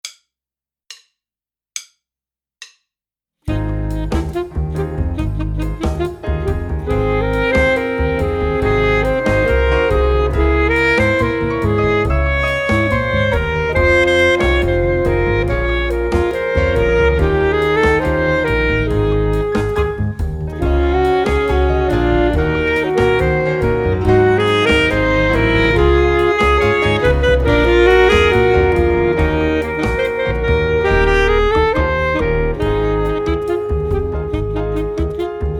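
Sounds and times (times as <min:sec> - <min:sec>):
saxophone: 0:03.5 - 0:35.5.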